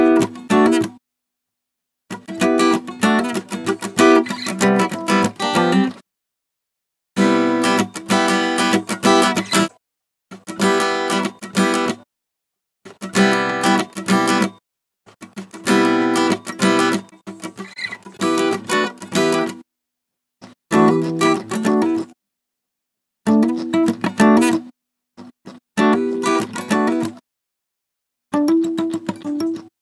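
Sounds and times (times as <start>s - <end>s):
majestic guitar loop in E minor: 0.0s - 0.9s, 2.2s - 6.0s, 7.2s - 9.7s, 10.5s - 12.0s, 13.0s - 14.5s, 15.5s - 19.6s, 20.7s - 22.1s, 23.3s - 24.7s, 25.8s - 27.2s, 28.4s - 29.7s.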